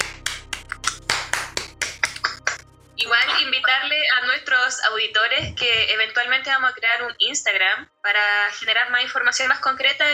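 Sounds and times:
hands clapping: 0.0s - 3.6s
speech: 3.7s - 10.1s.

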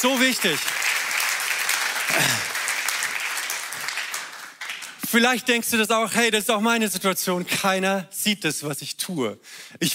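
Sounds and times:
speech: 0.0s - 0.9s, 5.1s - 9.9s
crowd clapping: 0.0s - 5.4s.

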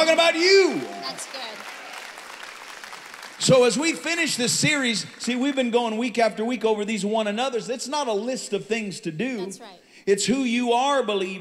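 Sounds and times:
speech: 0.0s - 1.7s, 3.4s - 11.3s
audience clapping hands: 0.0s - 6.2s.

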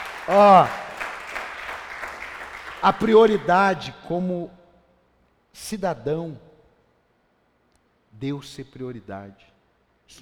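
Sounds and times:
audience applause: 0.0s - 3.7s
speech: 0.3s - 0.8s, 2.8s - 4.6s, 5.6s - 6.5s, 8.2s - 9.5s.

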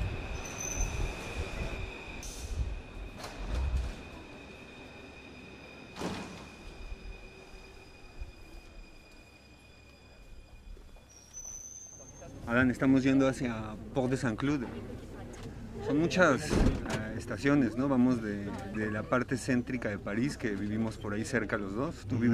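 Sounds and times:
Paris metro train rumbling in motion: 0.0s - 22.3s
Paris metro wheel squeals and clunks: 0.2s - 12.5s
speech: 12.5s - 15.0s, 15.8s - 22.3s.

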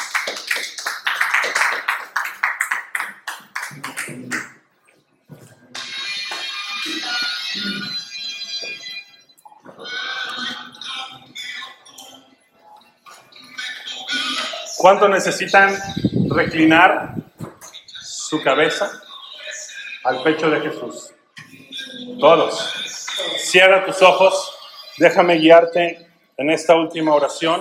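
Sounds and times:
audience applauding: 0.0s - 4.6s
speech: 14.8s - 17.2s, 18.3s - 19.0s, 20.0s - 21.1s, 22.2s - 22.8s, 23.5s - 24.4s, 25.0s - 27.5s.

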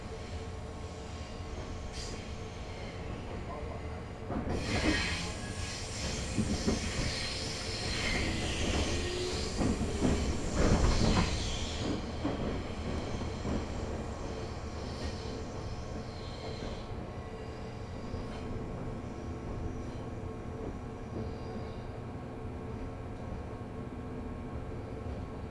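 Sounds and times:
local train running on the Chuo East Line: 0.0s - 25.4s
squealing train wheels: 4.5s - 18.5s.

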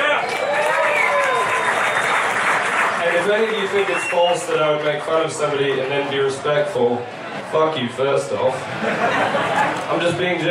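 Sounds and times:
people whooping and cheering: 0.0s - 4.5s
audience clapping: 0.0s - 6.3s
speech: 3.3s - 10.5s
laughter: 5.4s - 10.5s.

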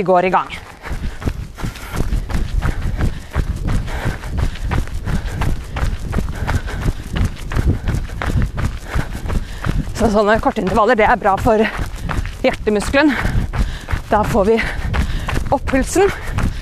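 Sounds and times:
speech: 0.0s - 1.1s, 10.0s - 11.8s, 12.4s - 13.3s, 14.1s - 14.8s, 15.5s - 16.3s
running footsteps during an interval exercise: 0.0s - 16.6s.

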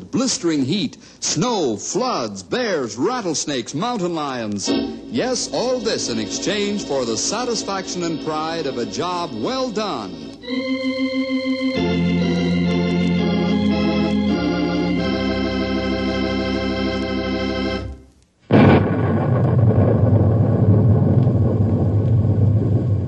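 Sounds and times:
speech: 0.1s - 11.5s
music: 4.6s - 18.1s
thunder rumbling: 4.7s - 10.4s, 18.5s - 23.0s.

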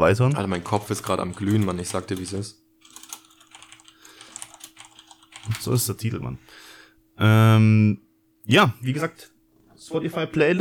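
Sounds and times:
speech: 0.0s - 2.6s, 5.5s - 6.6s, 7.2s - 10.6s
typing on a computer keyboard: 0.3s - 5.6s.

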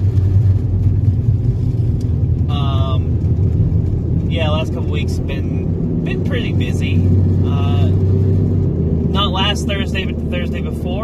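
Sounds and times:
car engine noise while driving: 0.0s - 11.0s
speech: 4.4s - 8.3s, 9.1s - 11.0s.

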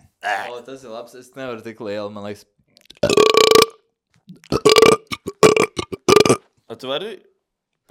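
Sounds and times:
speech: 0.2s - 2.6s, 6.8s - 7.3s
person burping: 3.0s - 6.4s.

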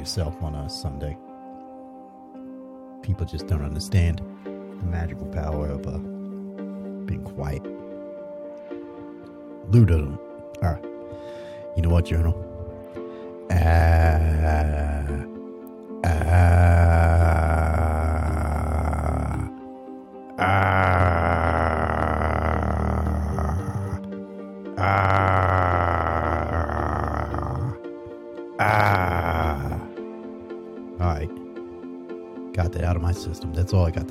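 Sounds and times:
speech: 0.0s - 1.3s, 3.0s - 6.1s, 7.1s - 7.8s, 9.7s - 12.5s, 13.5s - 15.2s, 16.0s - 16.9s, 32.8s - 34.0s
person primal screaming: 13.5s - 15.3s, 16.0s - 19.5s, 20.4s - 24.0s, 24.8s - 27.8s, 28.6s - 29.9s.

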